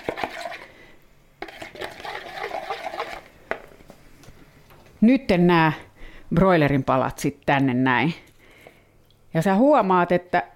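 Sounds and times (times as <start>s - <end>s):
utensil stirring spices into oil in a bowl: 0.0s - 0.7s, 1.4s - 3.4s
speech: 5.0s - 8.2s, 9.3s - 10.5s.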